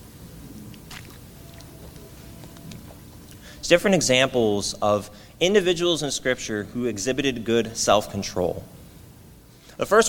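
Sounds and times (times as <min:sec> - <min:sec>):
hiss: 0:00.0 - 0:10.0
person sipping water: 0:00.6 - 0:03.5
speech: 0:03.6 - 0:08.8, 0:09.8 - 0:10.0.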